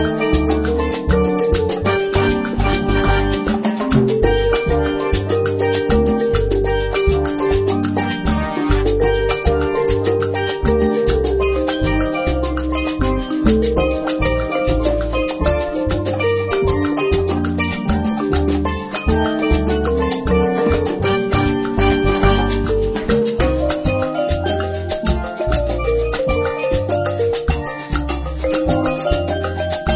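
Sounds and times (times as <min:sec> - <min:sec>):
latin marimba: 0:00.0 - 0:29.9.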